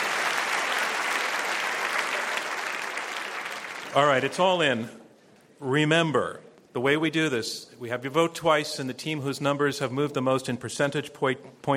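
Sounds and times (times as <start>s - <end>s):
audience applause: 0.0s - 4.3s
speech: 3.9s - 5.0s, 5.6s - 11.7s.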